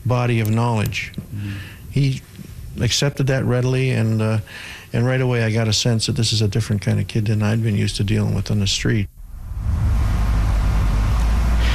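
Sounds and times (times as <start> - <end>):
speech: 0.1 - 9.2
tow vehicle engine rumble towing a wrecked 1985 Burgundy Firebird: 9.1 - 11.7.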